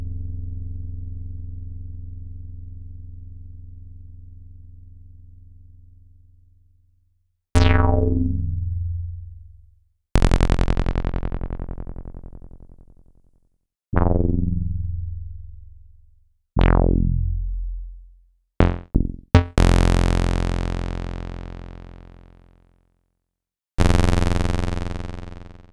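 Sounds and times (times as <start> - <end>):
Roland SH-09 synth bass: 7.6 - 9.4, 10.2 - 12.9, 14.0 - 15.8, 16.6 - 22.4, 23.8 - 25.7.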